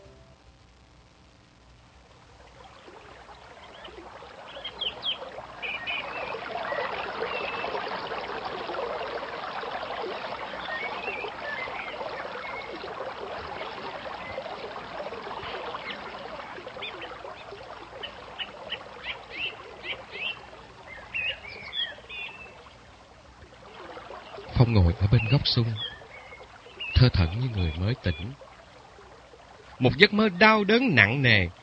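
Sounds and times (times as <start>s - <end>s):
river water flowing: 2.1s - 31.6s
birds chirping: 3.7s - 8.3s, 10.1s - 12.8s, 13.5s - 22.6s, 24.1s - 28.4s, 29.8s - 31.5s
speech: 24.7s - 25.9s, 27.0s - 28.4s, 29.8s - 31.6s.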